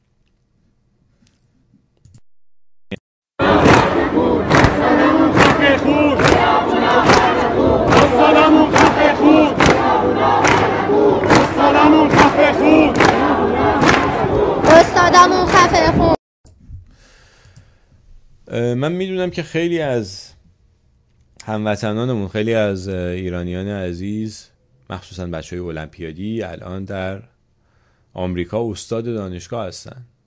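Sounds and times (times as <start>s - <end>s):
university protest crowd chanting: 3.4s - 16.2s
speech: 18.5s - 20.4s, 21.5s - 27.3s, 28.2s - 30.1s.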